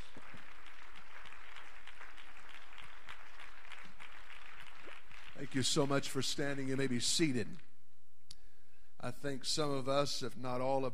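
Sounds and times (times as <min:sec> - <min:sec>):
audience clapping hands: 0:00.0 - 0:07.6
speech: 0:05.4 - 0:07.7, 0:09.0 - 0:10.9.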